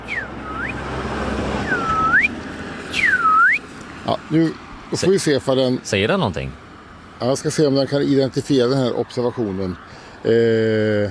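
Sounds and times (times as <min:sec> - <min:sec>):
person whistling in imitation of a bird call: 0:00.0 - 0:00.8, 0:01.6 - 0:03.6
rushing noise: 0:00.0 - 0:11.1
speech: 0:04.0 - 0:06.6, 0:07.2 - 0:11.1.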